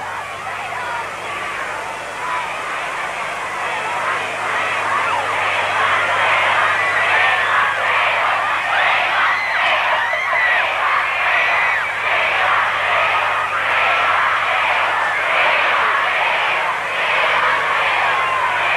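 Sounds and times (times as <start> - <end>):
large crowd of fans screaming and chanting: 0.0 - 18.7.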